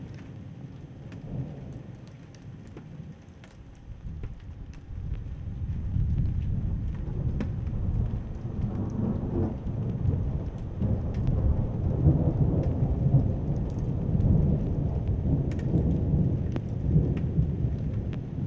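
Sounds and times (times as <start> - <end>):
thunder: 3.8 - 18.4.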